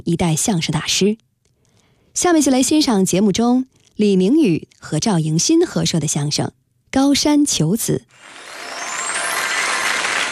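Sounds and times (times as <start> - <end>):
speech: 0.0 - 1.3, 2.2 - 8.4
audience applause at a xiangsheng crosstalk comedy performance: 8.2 - 10.3.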